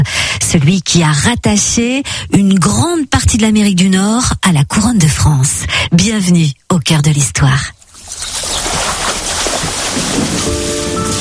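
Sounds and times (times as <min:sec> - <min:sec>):
speech: 0:00.0 - 0:08.5
canoe paddles dipping slowly into the water on the Mississippi: 0:07.8 - 0:11.1
wind noise: 0:08.0 - 0:11.1.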